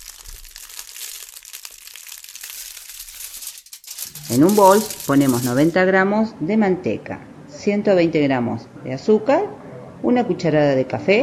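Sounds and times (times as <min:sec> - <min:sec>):
aluminium foil crinkling over a baking mould: 0:00.0 - 0:05.8
speech: 0:04.3 - 0:11.2.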